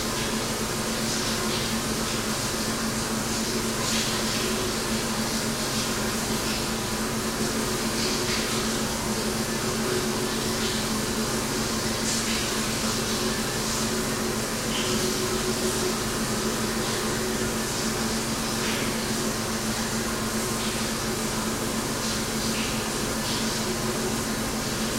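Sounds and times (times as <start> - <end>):
locker room fan: 0.0 - 24.9
locker room shower running: 0.0 - 24.9.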